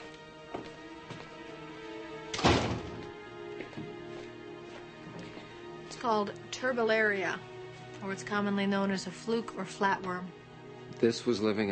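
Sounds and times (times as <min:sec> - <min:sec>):
door shutting: 0:02.3 - 0:03.2
speech: 0:06.0 - 0:10.4, 0:11.0 - 0:11.7.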